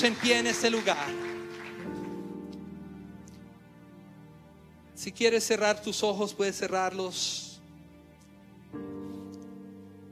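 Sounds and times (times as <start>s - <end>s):
speech: 0.0s - 1.4s, 5.0s - 7.5s
audience applauding: 0.0s - 2.3s.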